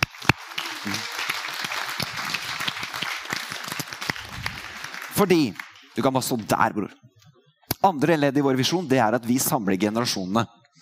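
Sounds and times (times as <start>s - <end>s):
audience applause: 0.0s - 6.3s
speech: 0.8s - 1.1s, 5.2s - 7.1s, 7.8s - 10.6s.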